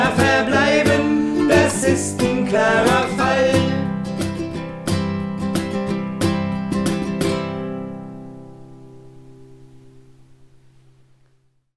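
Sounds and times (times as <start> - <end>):
two-part song: 0.0 - 7.7.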